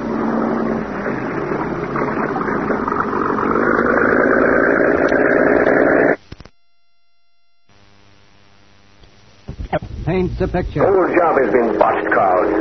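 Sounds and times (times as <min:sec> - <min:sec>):
cabin cruiser motorboat engine on river: 0:00.0 - 0:06.2, 0:10.8 - 0:12.6
speech: 0:10.2 - 0:12.6.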